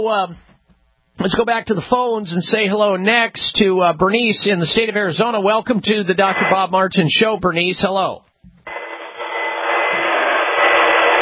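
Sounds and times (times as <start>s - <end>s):
speech: 0.0s - 0.5s, 1.2s - 8.3s
vacuum cleaner running heard over a telephone line: 8.7s - 11.2s.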